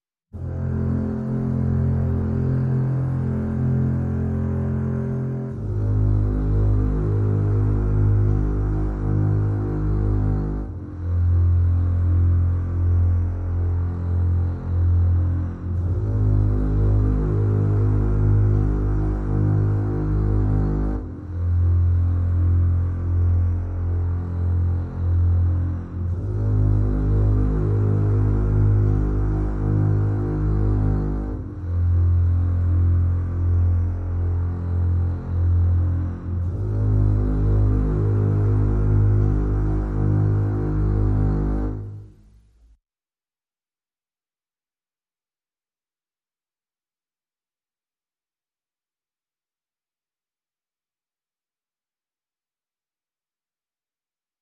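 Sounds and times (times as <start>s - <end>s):
bass mix: 0.0s - 42.8s.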